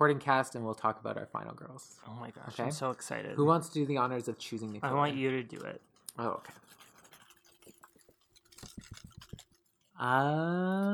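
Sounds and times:
speech: 0.0s - 6.8s, 10.0s - 10.9s
paper rustling: 4.5s - 10.0s.

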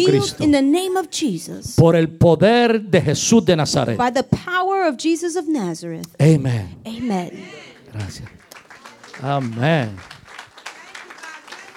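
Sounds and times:
speech: 0.0s - 8.4s, 9.2s - 10.1s
audience applause: 7.4s - 11.7s.

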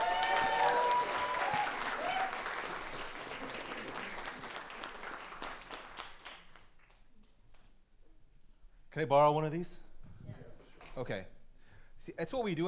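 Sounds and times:
audience cheering: 0.0s - 5.7s
audience applause: 0.0s - 6.8s
speech: 9.0s - 9.8s, 11.0s - 11.4s, 12.0s - 12.6s.

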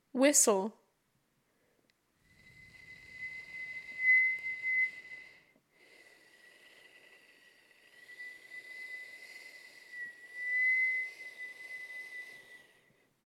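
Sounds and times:
whistle: 2.3s - 5.6s, 6.6s - 13.0s.

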